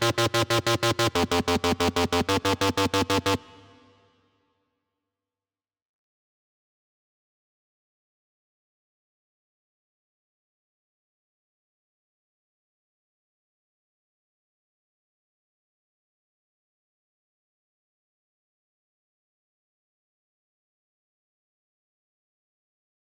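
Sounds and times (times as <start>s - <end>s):
synth: 0.0s - 4.0s.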